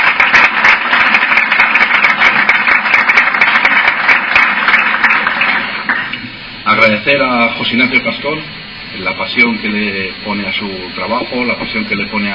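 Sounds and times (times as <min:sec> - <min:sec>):
crowd applause: 0:00.0 - 0:06.2
speech: 0:07.1 - 0:12.3.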